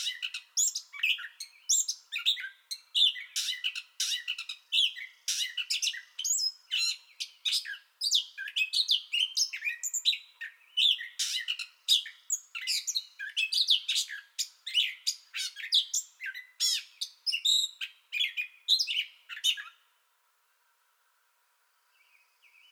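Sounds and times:
Gray catbird song: 0.0 - 19.9, 21.8 - 22.7.

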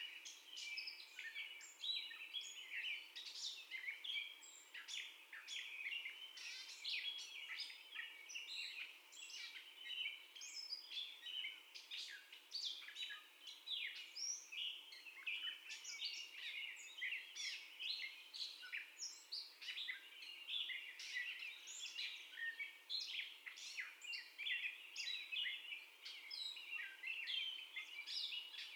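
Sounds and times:
gray catbird song: 0.0 - 28.7.

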